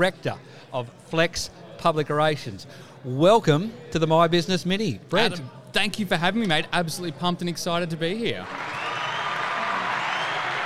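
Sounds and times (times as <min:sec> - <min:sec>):
speech: 0:00.0 - 0:08.8
crowd applause and cheering: 0:08.4 - 0:10.6.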